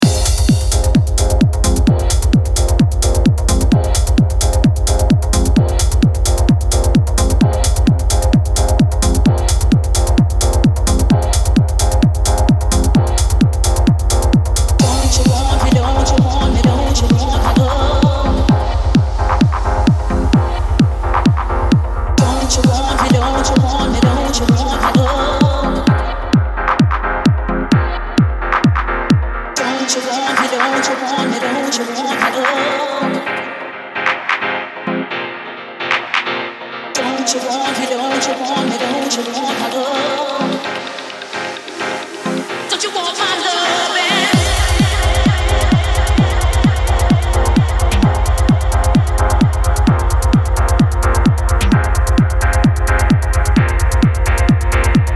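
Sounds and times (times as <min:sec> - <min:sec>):
techno music: 0:00.0 - 0:55.1.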